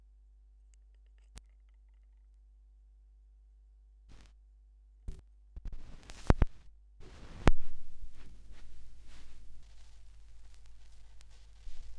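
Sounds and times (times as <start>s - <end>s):
vinyl record noise: 4.1s - 4.4s, 5.1s - 11.9s.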